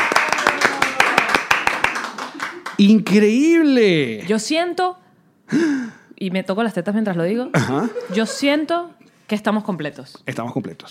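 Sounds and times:
applause: 0:00.0 - 0:02.9
speech: 0:02.8 - 0:10.9
laughter: 0:07.6 - 0:08.7.

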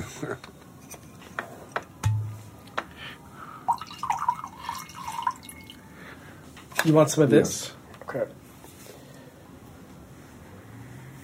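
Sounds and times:
glass taps and clinks: 0:03.7 - 0:05.8
wine pouring into a glass: 0:03.7 - 0:05.8
speech: 0:06.8 - 0:08.4.

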